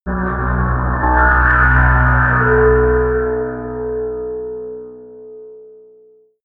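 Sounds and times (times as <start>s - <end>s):
droning tones: 0.0s - 5.5s
tense scraping sounds: 0.1s - 5.0s.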